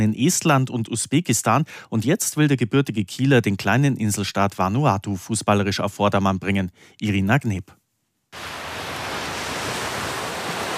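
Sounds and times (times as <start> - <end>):
speech: 0.0 - 8.6
ocean surf roaring on a beach: 8.4 - 10.7.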